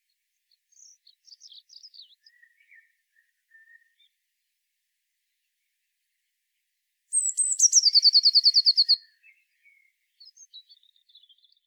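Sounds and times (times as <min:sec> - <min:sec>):
Eurasian blue tit song with trill: 0:00.0 - 0:04.2, 0:07.1 - 0:11.6.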